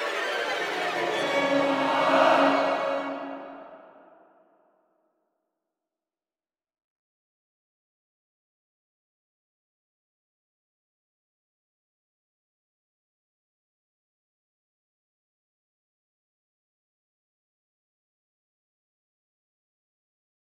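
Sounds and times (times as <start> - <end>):
finale music without solo: 0.2 - 4.1.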